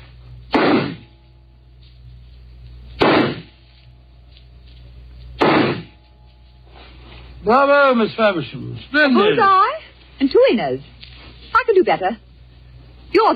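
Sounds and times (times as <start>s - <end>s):
revolver shots at a shooting contest: 0.5s - 1.1s, 3.0s - 3.6s, 5.4s - 6.0s
speech: 7.4s - 10.9s, 11.7s - 12.2s, 13.1s - 13.3s.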